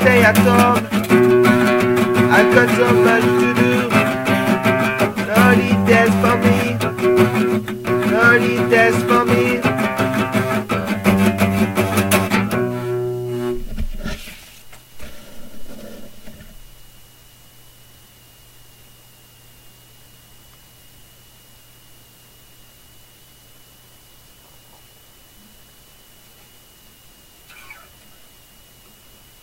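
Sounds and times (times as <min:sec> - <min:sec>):
acoustic session music: 0:00.0 - 0:13.8.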